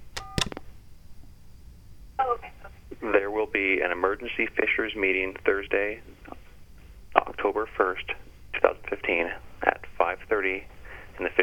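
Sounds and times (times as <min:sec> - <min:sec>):
sharp telephone key click: 0:00.1 - 0:00.6
telephone keypad tone from pressing 4 in an automated phone menu: 0:00.2 - 0:00.6
speech: 0:03.0 - 0:06.1, 0:07.4 - 0:08.2, 0:08.8 - 0:09.5, 0:10.1 - 0:11.4.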